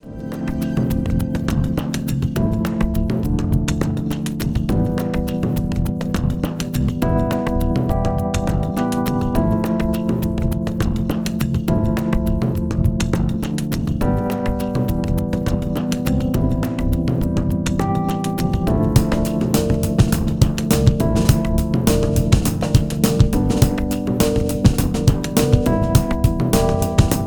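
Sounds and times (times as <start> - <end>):
percussion: 0.0 - 27.2.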